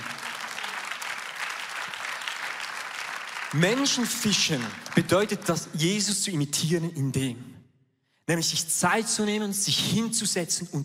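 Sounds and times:
applause: 0.0s - 5.7s
speech: 3.5s - 7.5s, 8.3s - 10.8s.

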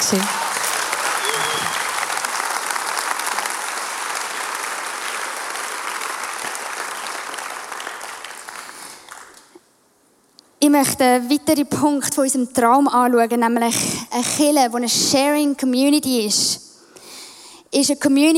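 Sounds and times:
audience applause: 0.0s - 9.6s
speech: 0.1s - 0.4s, 10.7s - 16.6s, 17.7s - 18.3s.

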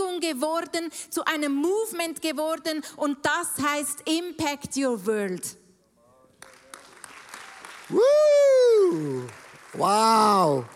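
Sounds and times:
speech: 0.2s - 5.6s, 7.9s - 10.7s
audience applause: 6.4s - 10.7s.

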